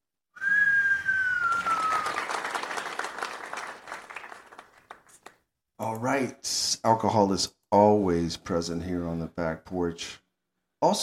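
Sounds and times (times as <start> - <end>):
cheering: 0.9 - 4.7
speech: 5.9 - 10.2, 10.8 - 11.0.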